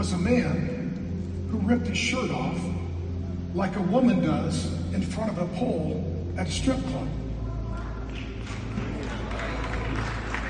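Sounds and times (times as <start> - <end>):
speech: 0.0 - 0.8, 1.5 - 2.8, 3.6 - 7.2
small group of people clapping: 7.8 - 10.4.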